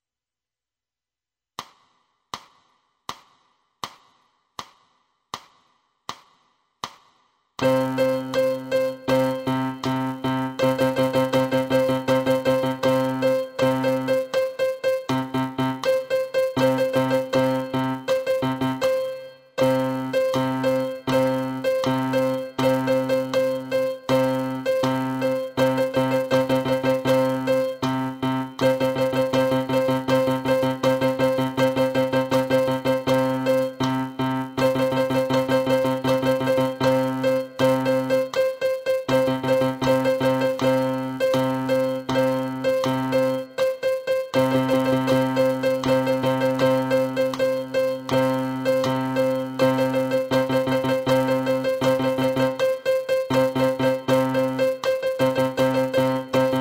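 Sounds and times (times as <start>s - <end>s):
piano: 7.6s - 56.6s.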